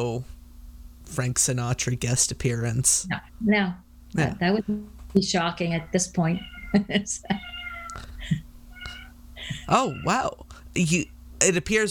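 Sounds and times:
speech: 0.0s - 0.4s, 1.1s - 7.5s, 9.5s - 11.9s
pet cat meowing: 5.8s - 10.4s.

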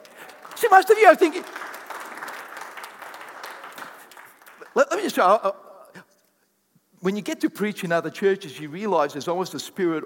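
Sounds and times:
audience clapping: 0.0s - 5.2s
speech: 0.6s - 1.6s, 4.8s - 5.6s, 7.0s - 10.0s.

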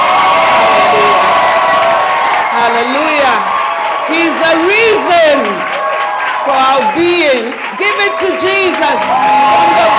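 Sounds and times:
church congregation applauding and cheering for Jesus: 0.0s - 9.9s
shouts and whoops: 0.0s - 9.9s
speech: 6.4s - 9.9s.

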